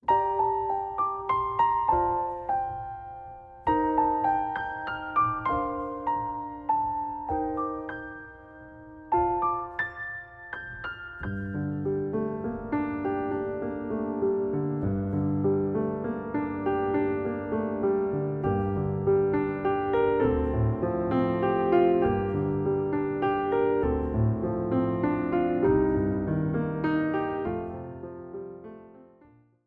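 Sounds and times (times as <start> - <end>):
musical accompaniment: 0.0 - 28.8.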